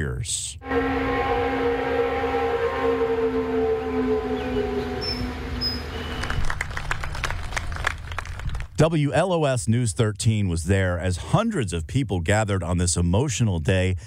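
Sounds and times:
speech: 0.0 - 1.6, 8.8 - 14.0
paper mill noon whistle blowing: 0.6 - 6.6
crowd applause: 4.3 - 8.7.

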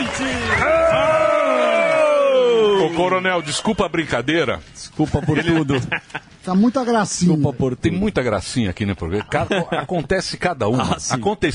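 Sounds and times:
audience applause: 0.0 - 3.8
speech: 3.0 - 11.5
laughter: 5.0 - 6.4, 9.0 - 10.1.

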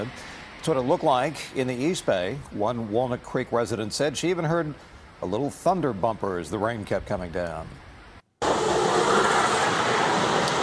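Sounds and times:
speech: 0.0 - 7.8
snow plows working: 8.4 - 10.6.

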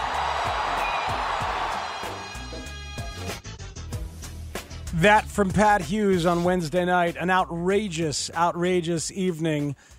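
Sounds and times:
ballpark crowd cheering after home run: 0.0 - 3.3
speech: 5.0 - 9.9.

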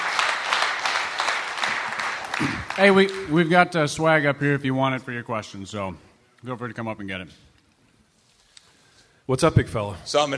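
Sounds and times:
audience applause at a live event: 0.0 - 3.4
speech: 2.4 - 7.5, 9.3 - 10.3.

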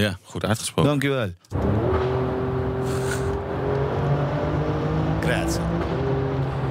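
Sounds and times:
speech: 0.0 - 1.8, 5.3 - 6.1
Alfa Romeo Stelvio Quadrifoglio engine droning while driving: 1.5 - 6.7.

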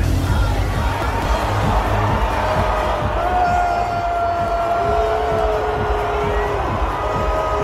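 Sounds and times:
large stadium crowd booing: 0.2 - 7.6.

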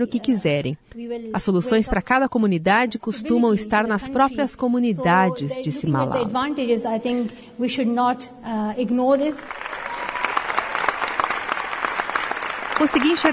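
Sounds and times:
speech: 0.0 - 9.9, 12.8 - 13.3
audience applause: 9.5 - 13.3.

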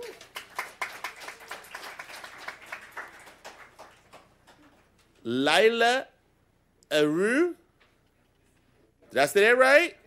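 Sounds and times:
audience applause: 0.0 - 4.7
speech: 5.2 - 6.1, 6.9 - 7.6, 9.1 - 10.0.

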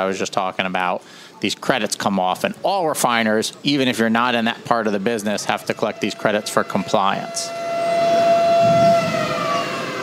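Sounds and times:
speech: 0.0 - 7.6
noon alarm siren test: 5.3 - 10.0.

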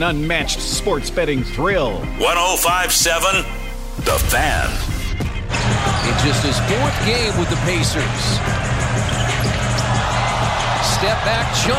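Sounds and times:
speech: 0.0 - 5.0, 6.0 - 9.2, 10.8 - 11.7
basketball arena crowd cheering and applauding: 5.5 - 11.7.

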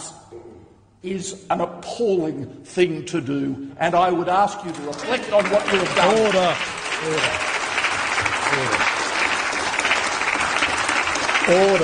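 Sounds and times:
speech: 0.3 - 7.5, 8.5 - 8.8, 11.5 - 11.8
prolonged clapping: 4.6 - 11.8.

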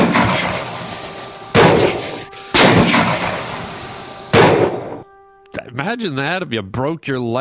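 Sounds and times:
rifle gunshots: 0.0 - 0.7, 1.6 - 3.5, 4.3 - 5.0
speech: 5.8 - 7.3.

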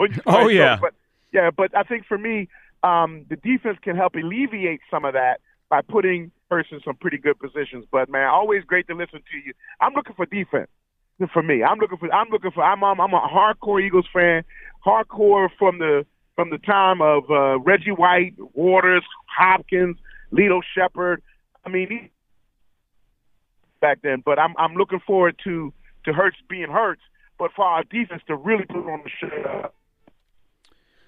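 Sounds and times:
phone call voice breaking up: 0.0 - 0.9, 27.5 - 29.7
speech: 0.0 - 22.2, 23.8 - 29.8.

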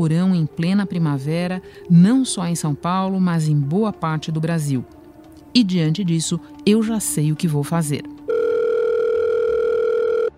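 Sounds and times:
speech: 0.0 - 8.1
telephone dial tone on a call to a television weather journalist: 8.3 - 10.3.

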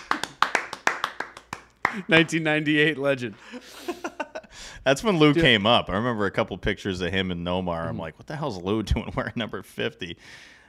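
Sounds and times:
sharp handclaps: 0.0 - 2.4
speech: 1.9 - 4.0, 4.8 - 10.6.

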